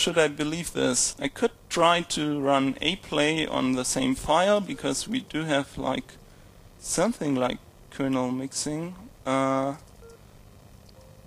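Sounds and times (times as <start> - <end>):
speech: 0.0 - 6.2, 6.8 - 9.9
test beep played through speakers: 10.0 - 10.2.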